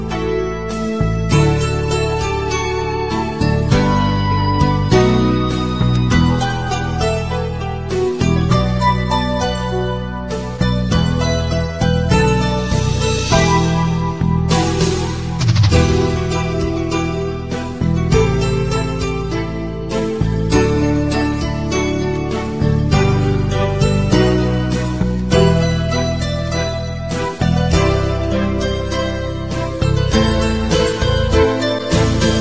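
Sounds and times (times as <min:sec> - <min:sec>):
sad background music: 0:00.0 - 0:32.3.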